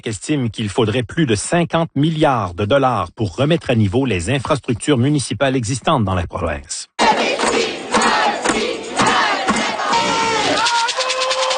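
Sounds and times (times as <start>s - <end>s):
speech: 0.0s - 6.9s
crowd of marching demonstrators: 7.0s - 11.5s.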